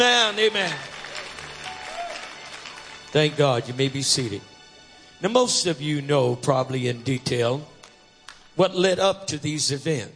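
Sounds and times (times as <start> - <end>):
speech: 0.0 - 0.9, 3.1 - 4.5, 5.2 - 7.7, 8.6 - 10.1
audience clapping: 0.0 - 4.6, 7.7 - 8.6.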